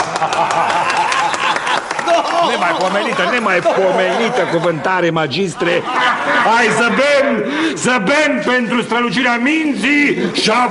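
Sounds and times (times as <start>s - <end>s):
crowd clapping: 0.0s - 4.1s
laughter: 0.0s - 8.3s
speech: 2.5s - 10.6s.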